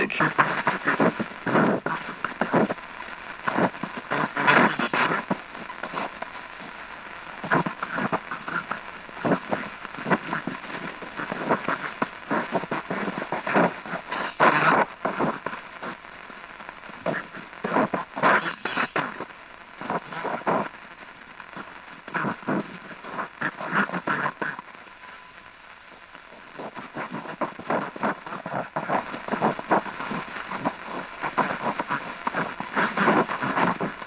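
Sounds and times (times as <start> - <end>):
shortwave radio from South Africa: 0.0 - 34.0.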